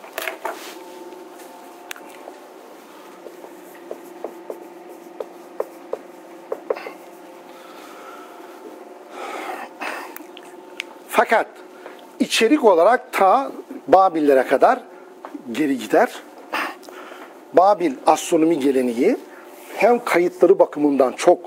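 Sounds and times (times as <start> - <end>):
steady low hum: 0.0 - 21.4
pen or marker scratching and tapping: 3.2 - 7.1
speech: 11.2 - 11.6, 12.2 - 14.9, 15.5 - 16.3, 17.5 - 21.4.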